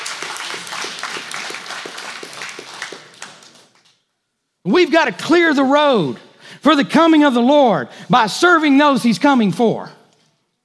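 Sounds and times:
audience applause for church greeters: 0.0s - 3.9s
speech: 4.7s - 10.0s.

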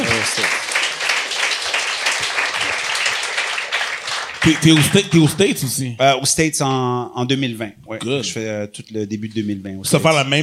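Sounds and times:
audience applause: 0.0s - 5.6s
speech: 4.4s - 10.4s.

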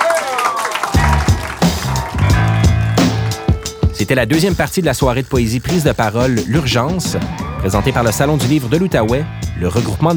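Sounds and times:
audience applause: 0.0s - 3.5s
speech: 4.0s - 10.1s.

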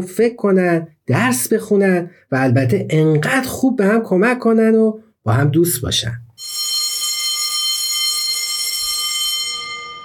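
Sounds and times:
speech: 0.0s - 6.6s
school bell ringing: 6.4s - 10.0s.

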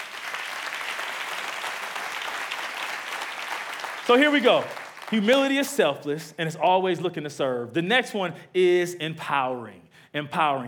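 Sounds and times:
audience applause: 0.0s - 5.4s
speech: 4.1s - 10.6s.

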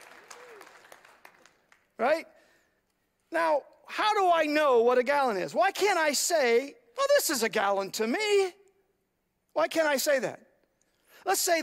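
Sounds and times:
audience applause: 0.0s - 1.9s
speech: 2.0s - 2.4s, 3.3s - 8.6s, 9.6s - 10.5s, 11.2s - 11.6s.

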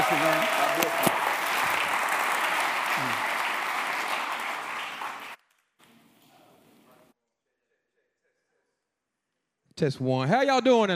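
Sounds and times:
audience applause: 0.0s - 5.4s
speech: 9.8s - 10.9s.

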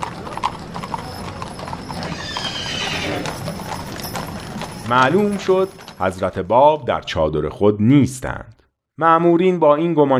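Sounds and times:
horse hooves clattering as mounted officers ride about: 0.0s - 7.2s
horse whinnying: 1.4s - 4.8s
speech: 4.9s - 10.1s.

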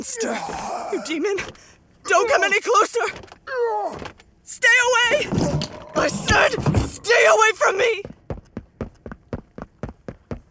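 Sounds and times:
speech: 0.0s - 8.2s
running footsteps as a radio-play sound effect: 5.3s - 10.5s.

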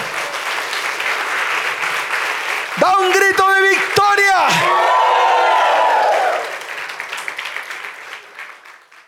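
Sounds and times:
large crowd applauding: 0.0s - 9.0s
speech: 2.8s - 3.4s.

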